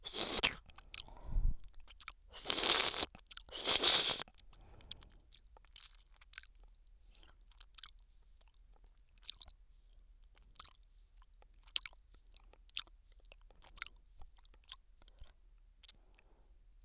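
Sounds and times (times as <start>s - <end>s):
person licking ice cream in the left ear: 0.0s - 5.1s.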